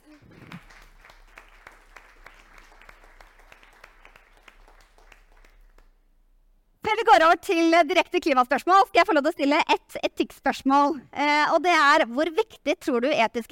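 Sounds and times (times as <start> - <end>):
audience applause: 0.0 - 5.9
speech: 7.2 - 13.5.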